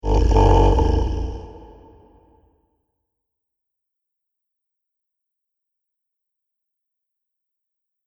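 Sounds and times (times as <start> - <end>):
sleepy zombie: 0.0 - 2.1.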